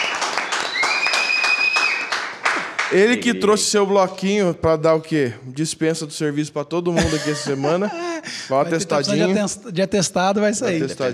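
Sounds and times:
applause: 0.0s - 3.2s
speech: 2.9s - 11.1s
laughter: 6.9s - 9.3s.

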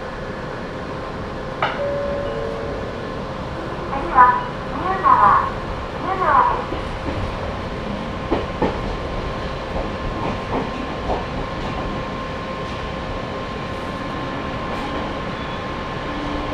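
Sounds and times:
Sangi Railway train rumble: 0.0s - 16.5s
Sangi Railway train humming whine: 1.6s - 6.0s.

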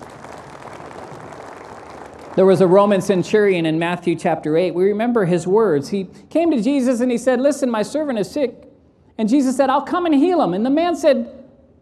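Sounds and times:
crowd clapping: 0.0s - 3.5s
speech: 2.4s - 8.6s, 9.2s - 11.4s.

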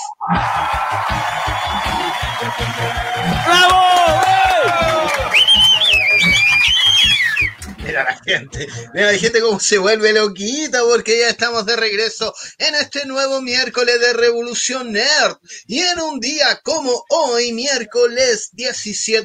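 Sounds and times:
recorded crowd cheering whistling and shouting sound effect: 0.2s - 7.8s
speech: 0.3s - 1.2s, 8.3s - 19.2s
recorded applause sound effect: 0.4s - 7.6s.

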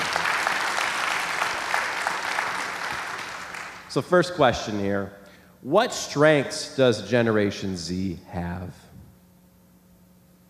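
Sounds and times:
audience applauding: 0.0s - 3.9s
speech: 3.9s - 8.8s.

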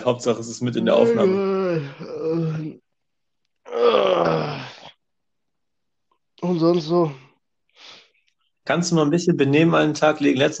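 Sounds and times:
speech: 0.0s - 2.8s, 6.4s - 7.2s, 8.7s - 10.5s
person groaning while stretching: 0.9s - 2.8s, 3.7s - 4.9s.

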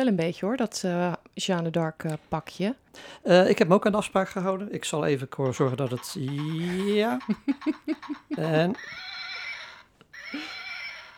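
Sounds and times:
speech: 0.0s - 9.1s
laughter: 5.4s - 8.8s
horse neighing as it is put away in a stable: 5.6s - 11.1s.

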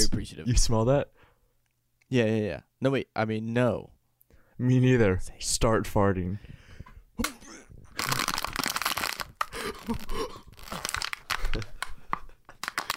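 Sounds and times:
speech: 0.0s - 1.2s, 2.1s - 4.0s, 4.6s - 6.6s, 7.2s - 7.6s, 9.8s - 10.3s
plastic water bottle being crushed: 8.0s - 11.9s, 12.5s - 12.9s.

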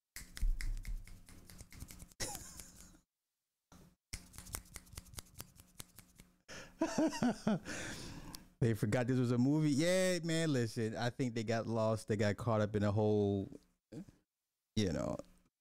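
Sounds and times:
finger snaps: 0.2s - 2.9s, 4.1s - 6.3s
speech: 6.8s - 8.0s, 8.6s - 14.1s, 14.8s - 15.6s.

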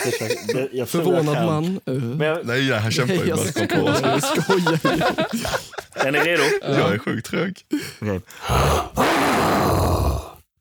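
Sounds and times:
laughter: 0.0s - 1.4s, 2.6s - 8.6s
speech: 0.0s - 9.8s
person imitating a lion's roar: 8.4s - 10.5s.

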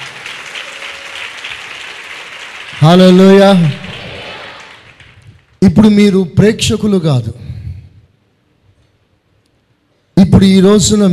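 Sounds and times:
Christian church congregation clapping loudly: 0.0s - 5.6s
speech: 2.8s - 3.8s, 5.6s - 7.5s, 10.4s - 11.1s.

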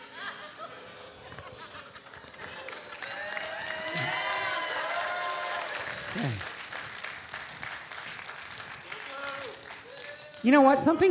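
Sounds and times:
laughter: 0.0s - 4.6s, 5.5s - 6.5s
audience clapping: 1.3s - 11.0s
speech: 10.4s - 11.0s.

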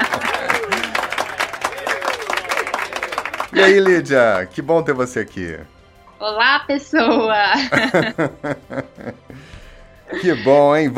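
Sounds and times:
excited voices laughing: 0.0s - 4.2s, 7.0s - 9.4s, 10.1s - 10.6s
small group clapping and cheering: 0.0s - 4.7s
speech: 3.6s - 10.9s.

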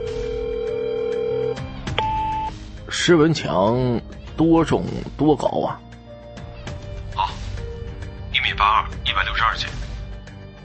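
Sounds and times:
telephone dialing and ringing: 0.0s - 2.5s
speech: 2.9s - 5.8s, 8.6s - 9.8s.

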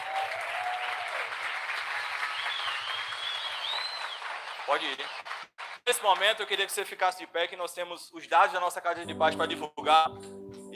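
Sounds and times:
audience applause: 0.0s - 6.6s
faint whistles: 2.4s - 4.2s
speech: 4.7s - 5.3s, 5.9s - 10.7s.

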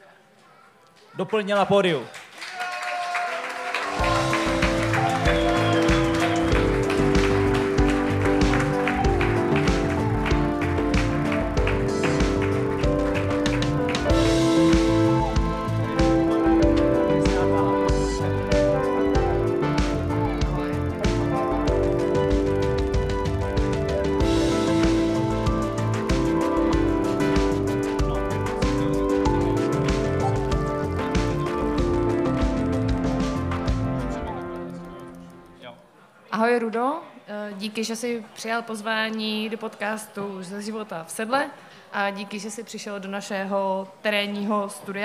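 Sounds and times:
speech: 1.2s - 2.2s, 36.5s - 45.0s
audience applause: 1.2s - 35.1s.

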